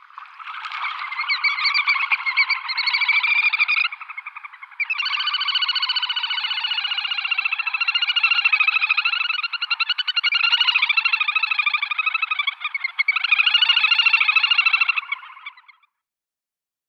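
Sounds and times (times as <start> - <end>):
little grebe calling: 0.0 - 15.9.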